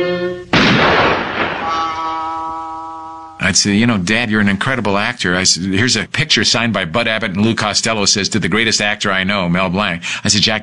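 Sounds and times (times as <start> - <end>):
gunshot: 0.5 - 2.2
steady tone: 1.4 - 3.9
speech: 3.5 - 10.6.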